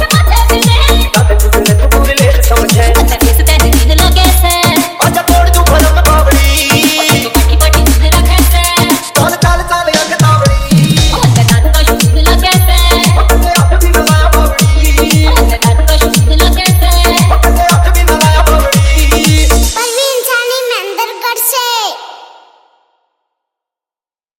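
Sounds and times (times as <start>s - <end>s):
fast hard bass Haryanvi DJ remix: 0.0s - 20.9s.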